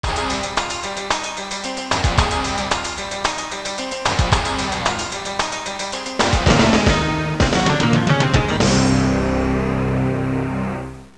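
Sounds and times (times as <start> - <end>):
rock music ringtone: 0.0 - 10.9.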